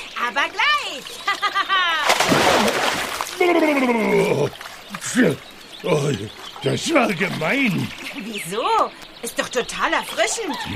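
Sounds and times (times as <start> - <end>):
speech: 0.3 - 2.8, 3.4 - 10.7
big splash of water: 2.0 - 3.6
high bright sing-song voices talking: 3.4 - 10.7.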